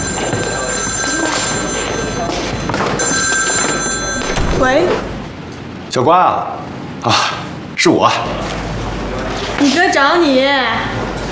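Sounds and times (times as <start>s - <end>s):
ward telephone ringing: 0.0s - 5.2s
speech: 4.7s - 5.0s, 6.0s - 8.6s, 9.6s - 11.0s.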